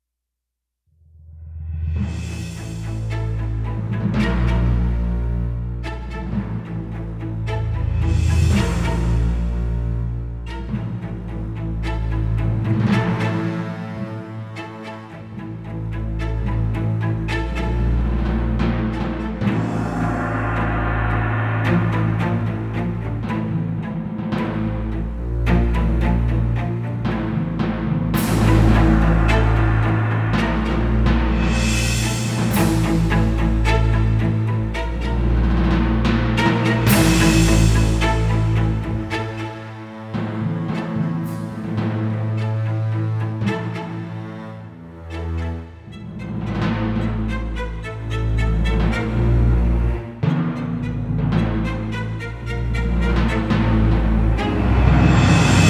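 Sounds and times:
dangerous tense music: 1.1 - 55.6.

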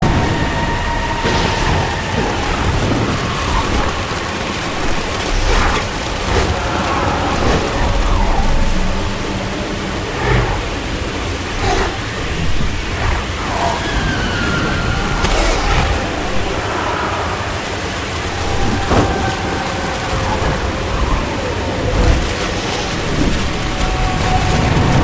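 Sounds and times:
blizzard ambience: 0.0 - 25.0.

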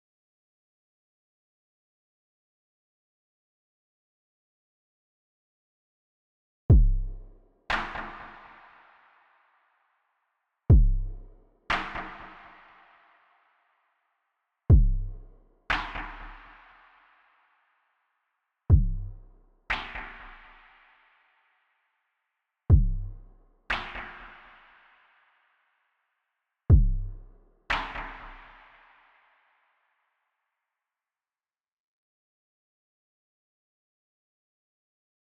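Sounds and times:
drums: 6.7 - 8.2, 10.7 - 12.4, 14.7 - 16.1, 18.7 - 20.2, 22.7 - 23.1, 26.7 - 27.1.

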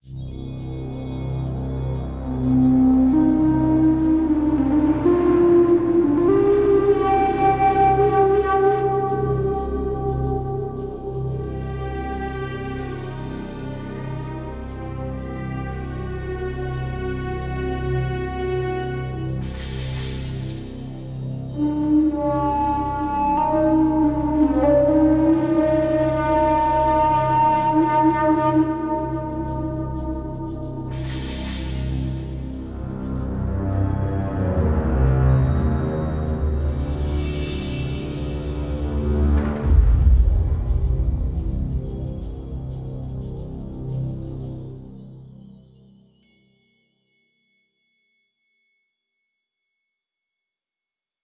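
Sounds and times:
Arabic music: 0.0 - 51.2.

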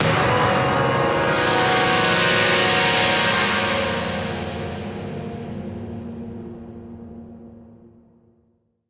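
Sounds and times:
musical stinger: 0.0 - 5.8.

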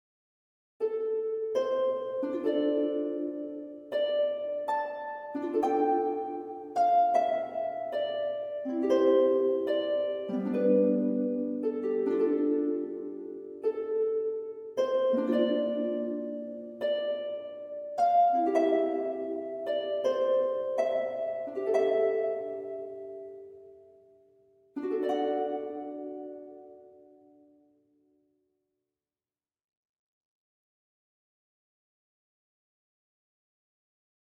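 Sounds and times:
solo harp: 0.8 - 27.8.

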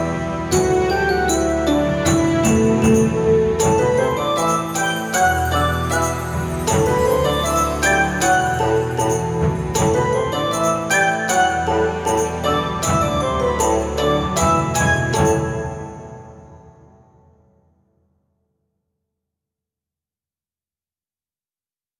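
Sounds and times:
local folk music: 0.0 - 16.6.

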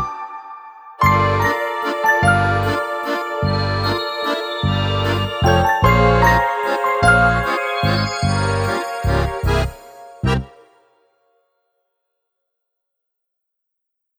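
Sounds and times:
waltz music: 0.0 - 10.8.

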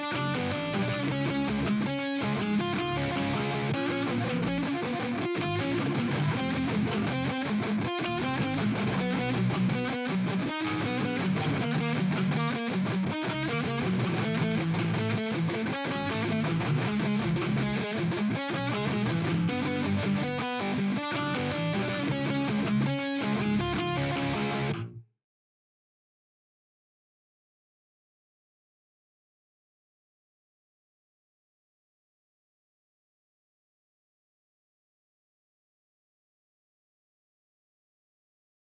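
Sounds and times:
guitars: 0.0 - 25.0.

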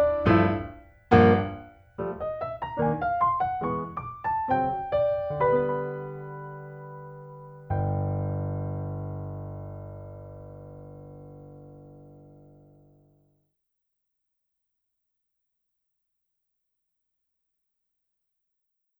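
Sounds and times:
ominous piano piece: 0.0 - 13.0.

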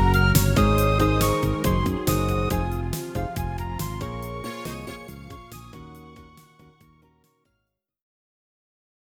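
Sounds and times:
upbeat background music: 0.0 - 6.6.

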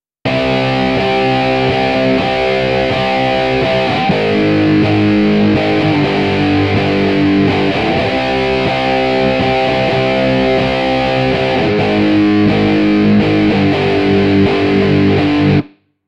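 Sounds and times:
dub guitar: 0.3 - 15.8.

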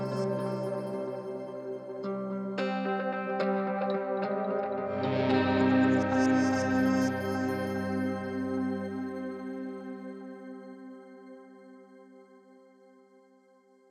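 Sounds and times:
guitars: 0.0 - 10.6.

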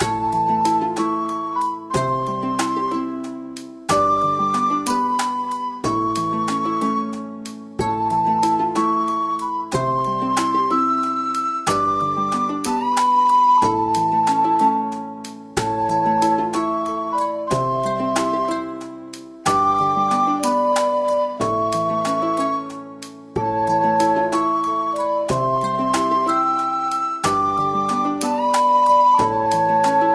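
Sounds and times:
day music: 0.0 - 30.1.

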